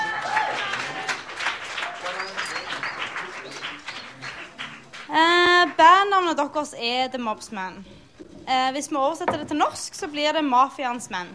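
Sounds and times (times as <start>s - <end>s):
cheers and voices: 0.0s - 1.3s
audience applauding: 0.0s - 6.0s
speech: 6.2s - 11.3s.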